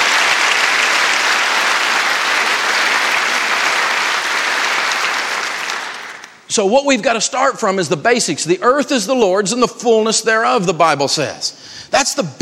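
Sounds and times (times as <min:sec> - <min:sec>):
audience applause: 0:00.0 - 0:06.4
speech: 0:06.5 - 0:12.4.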